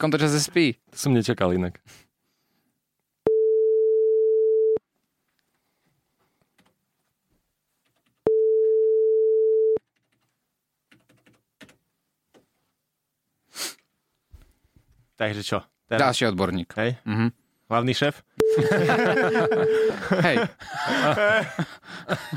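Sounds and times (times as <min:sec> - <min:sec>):
speech: 0:00.0 - 0:02.0, 0:15.2 - 0:22.3
telephone ringback tone from an unanswered call: 0:03.3 - 0:04.8, 0:08.3 - 0:09.8, 0:18.4 - 0:20.0
soft sniff-like hiss: 0:13.4 - 0:13.9
laughter: 0:18.5 - 0:22.3.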